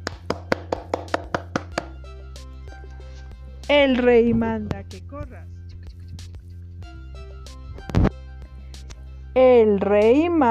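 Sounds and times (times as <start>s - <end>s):
hand clapping: 0.0s - 2.0s
speech: 3.7s - 5.6s, 9.4s - 10.5s.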